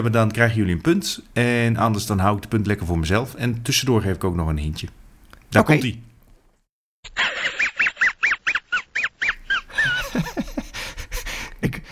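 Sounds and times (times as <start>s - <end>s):
speech: 0.0s - 6.1s
dog laughing: 7.1s - 11.3s.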